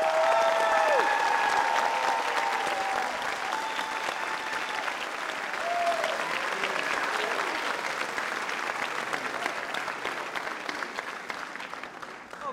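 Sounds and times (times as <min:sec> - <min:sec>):
whistles and cheers: 0:00.0 - 0:07.6
crowd clapping for graduates: 0:00.0 - 0:12.5.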